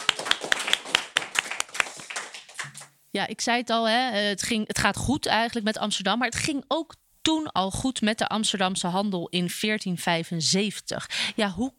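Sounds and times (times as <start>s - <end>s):
applause: 0.0s - 2.9s
speech: 3.1s - 11.7s.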